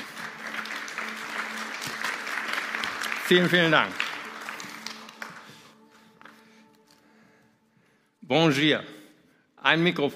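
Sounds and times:
audience applause: 0:00.0 - 0:06.0
speech: 0:03.3 - 0:04.0, 0:08.3 - 0:08.9, 0:09.6 - 0:10.1.

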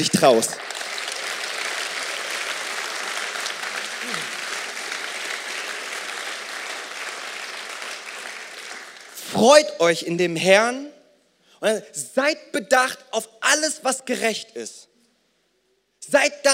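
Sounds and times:
speech: 0:00.0 - 0:00.7, 0:09.4 - 0:10.9, 0:11.6 - 0:14.8, 0:16.0 - 0:16.5
audience applause: 0:00.0 - 0:09.2.

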